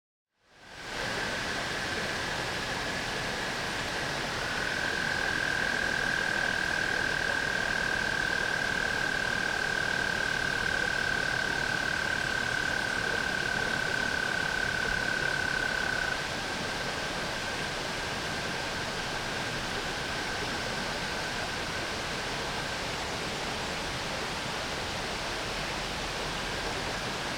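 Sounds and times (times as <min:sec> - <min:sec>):
broad hiss: 0:00.4 - 0:27.3
tree frog trill: 0:04.5 - 0:16.2.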